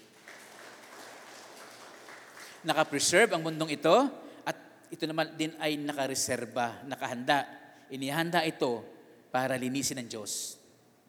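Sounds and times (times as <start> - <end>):
church congregation applauding the Lord: 0.0 - 4.1
speech: 2.6 - 10.6.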